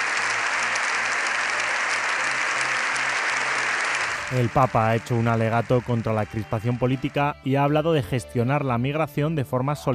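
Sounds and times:
sustained applause from a large crowd in parliament: 0.0s - 7.3s
speech: 4.3s - 9.9s.

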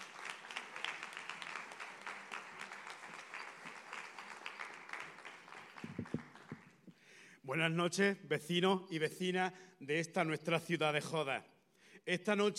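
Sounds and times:
crowd applauding: 0.0s - 6.8s
speech: 7.5s - 12.5s.

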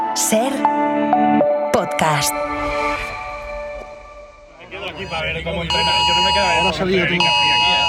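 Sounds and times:
speech: 0.2s - 3.1s, 5.0s - 7.7s
emergency alert on the press's mobile phones in Chattanooga: 5.7s - 7.8s.

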